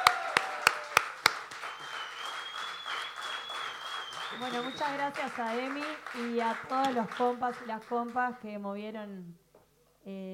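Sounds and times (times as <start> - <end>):
loud audience applause: 0.0 - 8.1
speech: 4.4 - 9.4, 10.0 - 10.3.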